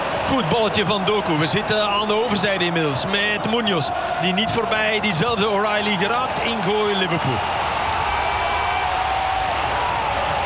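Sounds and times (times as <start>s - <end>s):
stadium crowd roaring: 0.0s - 10.4s
speech: 0.3s - 7.7s.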